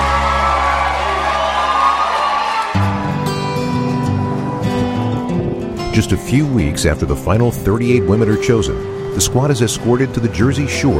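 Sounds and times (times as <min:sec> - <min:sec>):
audience applause: 0:00.0 - 0:03.5
audience cheering: 0:00.0 - 0:05.1
speech: 0:06.0 - 0:10.9.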